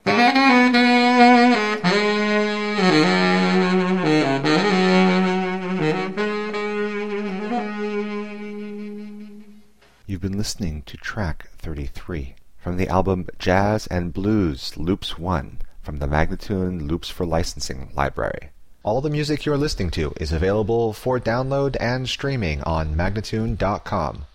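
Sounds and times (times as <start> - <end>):
jazz and blues loops: 0.0 - 9.8
person speaking: 10.0 - 24.3.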